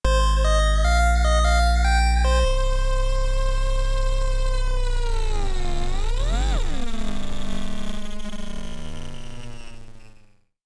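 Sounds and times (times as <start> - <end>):
musical stinger: 0.0 - 6.8.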